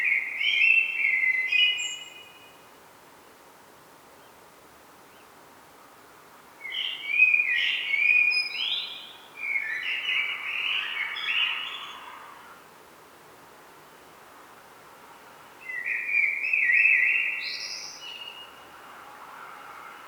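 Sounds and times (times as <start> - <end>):
common blackbird whistled song: 0.0 - 2.4, 6.7 - 11.9, 15.6 - 18.5.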